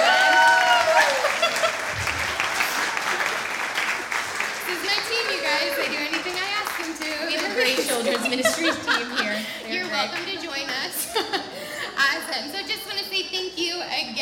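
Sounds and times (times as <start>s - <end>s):
voices and cheering: 0.0s - 10.0s
church congregation clapping: 0.0s - 10.4s
laughter: 1.0s - 3.4s, 7.4s - 12.0s
speech: 10.0s - 11.4s.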